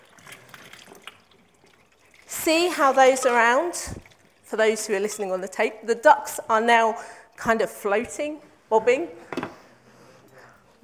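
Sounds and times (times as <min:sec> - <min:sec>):
water pouring into a container and overflowing: 0:00.0 - 0:05.6
speech: 0:02.4 - 0:09.3.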